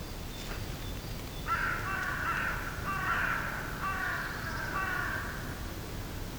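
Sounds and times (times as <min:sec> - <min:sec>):
mixed woodland soundscape in early spring: 0:00.1 - 0:06.2.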